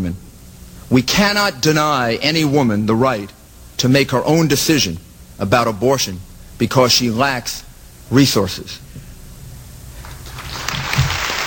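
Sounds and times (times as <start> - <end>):
speech: 0.9 - 8.8
audience applause: 10.2 - 11.4.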